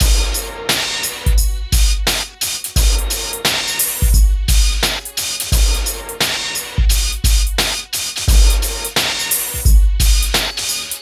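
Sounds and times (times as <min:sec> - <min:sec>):
hip hop and R&B drum loops mix: 0:00.0 - 0:11.0.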